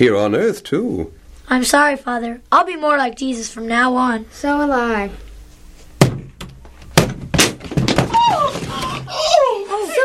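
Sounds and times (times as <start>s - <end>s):
speech: 0.0s - 5.2s
door battered down with splintering thuds: 6.0s - 9.1s.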